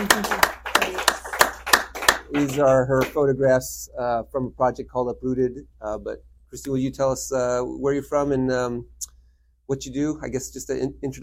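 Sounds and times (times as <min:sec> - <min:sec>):
audience applause: 0:00.0 - 0:03.2
speech: 0:02.3 - 0:08.9, 0:09.7 - 0:11.2.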